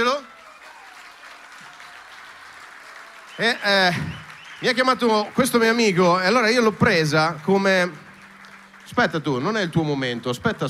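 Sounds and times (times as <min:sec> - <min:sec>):
faint audience clapping: 0:00.0 - 0:10.6
speech: 0:03.4 - 0:08.0, 0:08.9 - 0:10.6.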